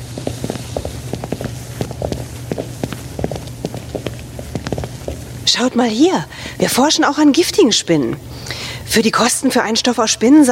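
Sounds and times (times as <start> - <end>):
footsteps walking over to a spider terrarium: 0.0 - 6.6
constant low hum: 0.0 - 8.9
speech: 5.5 - 10.5.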